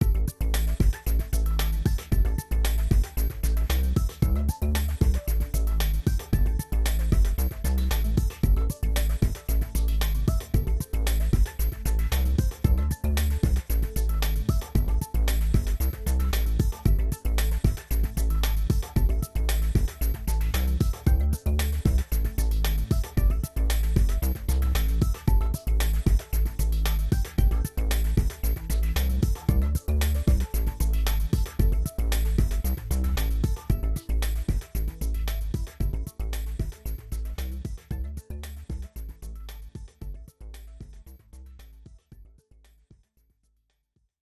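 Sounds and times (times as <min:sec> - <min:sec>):
groove music: 0:00.0 - 0:42.8.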